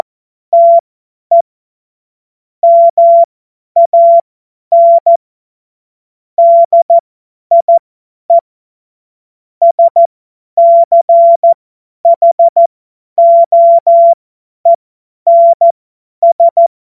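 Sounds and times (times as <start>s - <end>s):
CW Morse code beeps: 0.6s - 1.4s, 2.6s - 5.2s, 6.4s - 7.8s, 9.6s - 12.6s, 13.2s - 14.2s, 15.3s - 16.7s.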